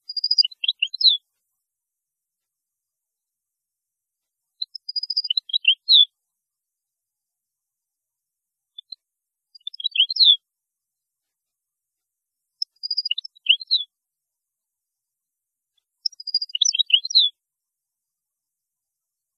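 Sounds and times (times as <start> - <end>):
European goldfinch twittering: 0.1 - 1.2, 4.8 - 6.1, 9.6 - 10.4, 12.7 - 13.8, 16.1 - 17.3.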